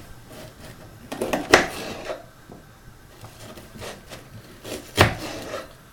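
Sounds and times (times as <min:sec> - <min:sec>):
knife chopping an onion on a wooden board: 0:01.2 - 0:02.2, 0:04.7 - 0:05.7.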